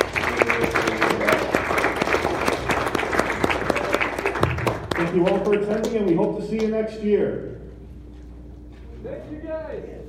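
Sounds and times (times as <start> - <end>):
audience applause: 0.0 - 6.4
speech: 5.1 - 7.6, 9.0 - 10.0.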